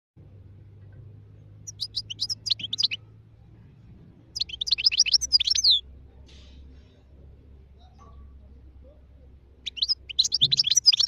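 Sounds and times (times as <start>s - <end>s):
European goldfinch singing with twittering, chirps and buzzy trills: 1.6s - 3.1s, 4.4s - 5.8s, 9.6s - 11.0s.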